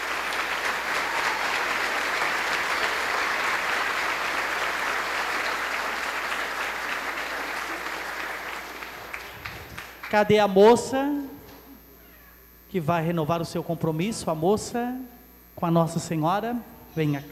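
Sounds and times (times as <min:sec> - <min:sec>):
crowd applause: 0:00.0 - 0:10.3
speech: 0:10.1 - 0:11.4, 0:12.7 - 0:17.3.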